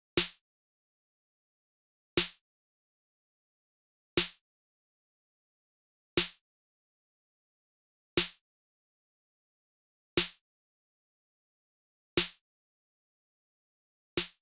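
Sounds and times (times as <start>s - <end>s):
snare drum: 0.2s - 0.4s, 2.2s - 2.4s, 4.2s - 4.4s, 6.2s - 6.4s, 8.2s - 8.4s, 10.2s - 10.4s, 12.2s - 12.4s, 14.2s - 14.4s.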